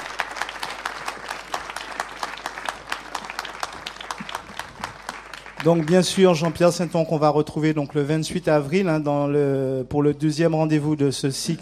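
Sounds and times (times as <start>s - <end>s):
audience applause: 0.0s - 8.1s
speech: 5.6s - 11.5s.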